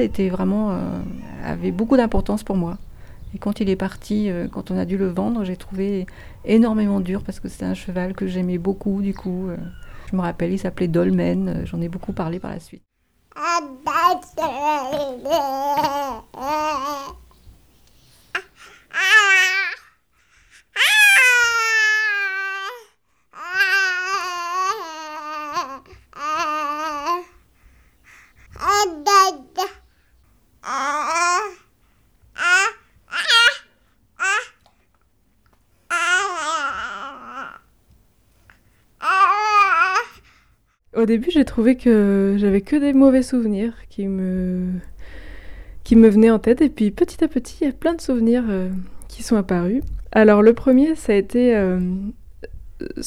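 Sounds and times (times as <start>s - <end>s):
speech: 0.0s - 17.2s, 41.0s - 44.9s, 45.9s - 53.0s
baby babbling: 0.4s - 1.9s, 13.3s - 17.4s, 18.3s - 19.9s, 20.8s - 27.4s, 28.5s - 29.9s, 30.6s - 31.7s, 32.4s - 34.7s, 35.9s - 37.7s, 39.0s - 40.2s.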